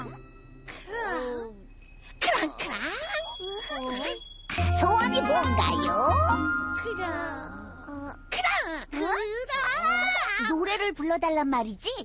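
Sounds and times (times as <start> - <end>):
small bell being shaken and ringing: 0.2 - 8.9
speech: 5.4 - 9.3, 10.5 - 12.0.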